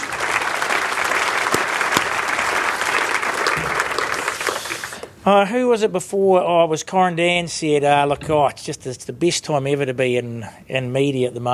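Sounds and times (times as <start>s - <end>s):
audience applause: 0.0s - 5.2s
speech: 5.3s - 11.5s.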